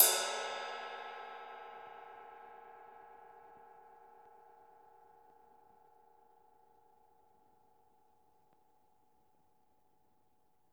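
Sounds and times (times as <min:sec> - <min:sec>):
ride drums and percussion: 0:00.0 - 0:01.6.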